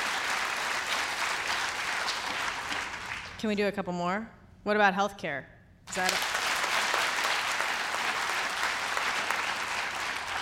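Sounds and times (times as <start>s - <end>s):
audience clapping at a talk: 0.0s - 3.4s, 5.9s - 10.4s
speech: 3.4s - 6.3s.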